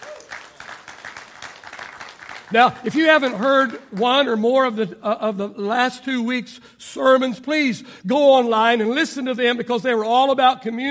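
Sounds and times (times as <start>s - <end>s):
audience applause: 0.0s - 4.0s
speech: 2.5s - 10.8s.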